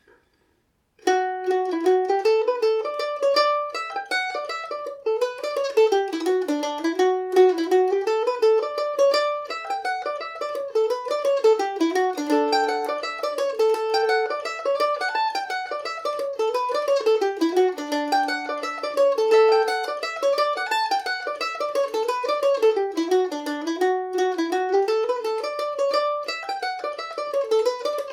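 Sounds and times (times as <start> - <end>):
Irish mandolin playing in D major: 0.0 - 28.1.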